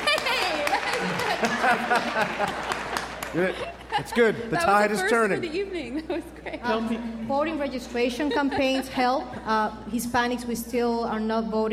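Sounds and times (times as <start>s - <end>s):
audience applauding: 0.0s - 3.8s
laughter: 0.0s - 4.8s, 7.9s - 9.2s
speech: 1.6s - 2.7s, 3.3s - 11.7s.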